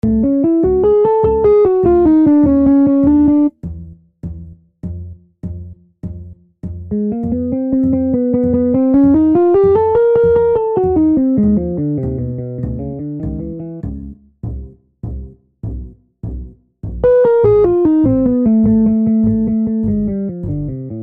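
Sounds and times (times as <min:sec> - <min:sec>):
melody: 0:00.0 - 0:03.5, 0:07.0 - 0:13.8, 0:17.0 - 0:20.9.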